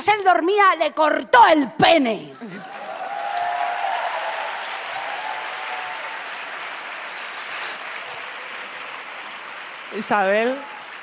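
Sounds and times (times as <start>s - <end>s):
speech: 0.0s - 2.4s, 9.9s - 10.7s
audience applause: 2.4s - 11.0s.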